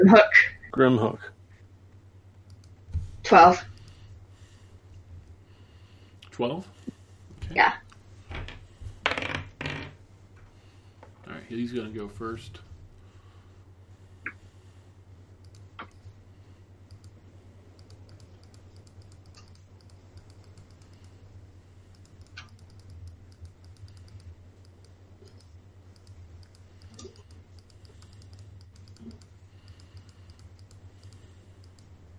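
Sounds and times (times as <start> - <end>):
speech: 0.0 - 1.4, 3.3 - 3.7, 6.4 - 6.7, 7.5 - 7.8, 11.5 - 12.7
low steady hum: 0.0 - 32.1
computer clicks from moving in a game: 2.4 - 2.8, 15.4 - 16.1, 16.8 - 21.2, 21.8 - 32.1.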